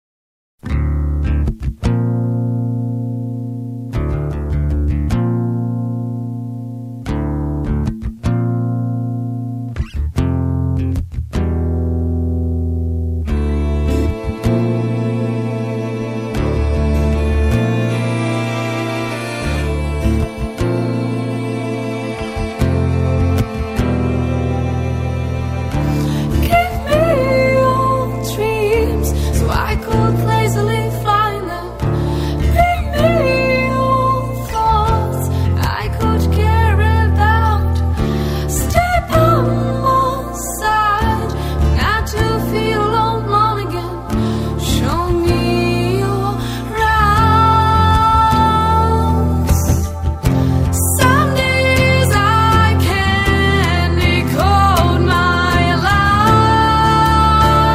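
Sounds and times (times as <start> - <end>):
acoustic music: 0.6 - 57.7.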